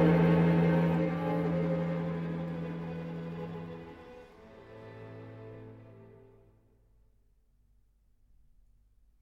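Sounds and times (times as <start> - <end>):
quartet music in A major with andante variations: 0.0 - 6.6.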